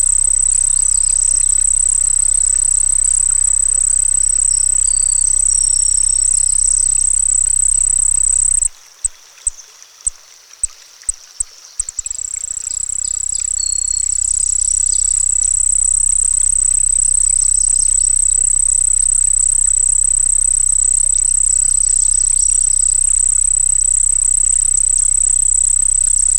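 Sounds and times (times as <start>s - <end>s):
crickets singing by a pond: 0.0s - 26.3s.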